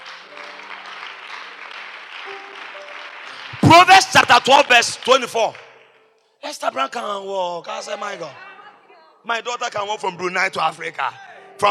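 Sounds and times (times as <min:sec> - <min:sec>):
crowd clapping: 0:00.0 - 0:06.1
speech: 0:03.7 - 0:05.6, 0:06.5 - 0:08.5, 0:09.2 - 0:11.7.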